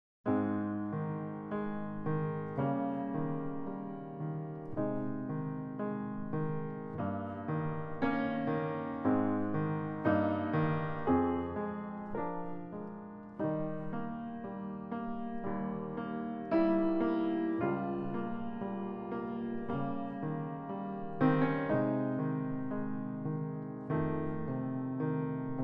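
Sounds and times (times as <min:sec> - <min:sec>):
piano: 0:00.2 - 0:25.6.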